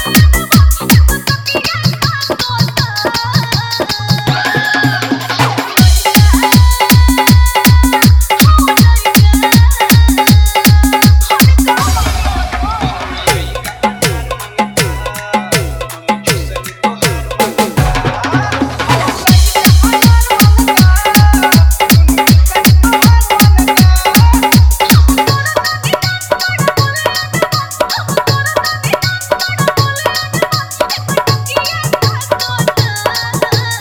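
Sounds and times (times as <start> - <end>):
Bhojpuri dance mix with dholak and bass: 0.0 - 33.7.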